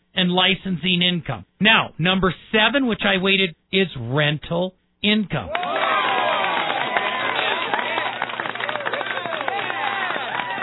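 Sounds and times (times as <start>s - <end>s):
speech: 0.2s - 5.7s
cheering and celebration: 5.5s - 10.6s.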